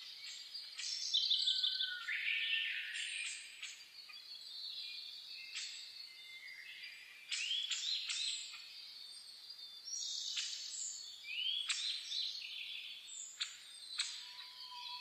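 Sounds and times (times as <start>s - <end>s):
chorus of birds singing: 0.0s - 15.0s.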